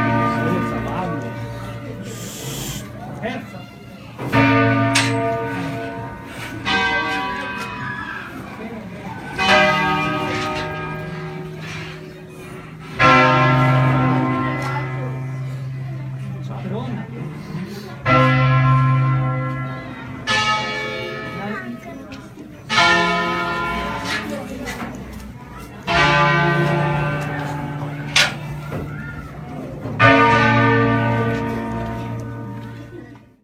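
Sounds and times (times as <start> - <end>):
church bells ringing: 0.0 - 33.4.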